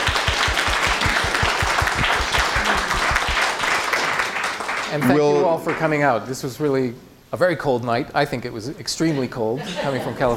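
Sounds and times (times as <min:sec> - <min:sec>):
audience applause: 0:00.0 - 0:05.2
speech: 0:04.9 - 0:10.3.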